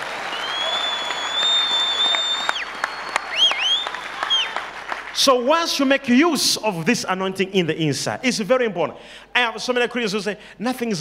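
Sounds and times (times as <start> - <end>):
audience clapping hands: 0.0 - 6.0
speech: 5.2 - 10.9.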